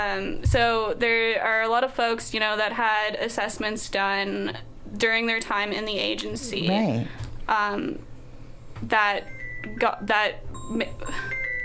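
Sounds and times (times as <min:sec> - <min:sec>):
speech: 0:00.0 - 0:08.1, 0:08.8 - 0:11.3
mobile phone ringing with electronic ringtone: 0:09.2 - 0:11.6.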